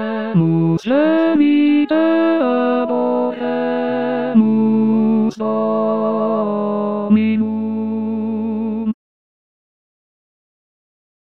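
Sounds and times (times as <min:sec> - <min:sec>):
tenor singing a hymn: 0:00.0 - 0:09.0.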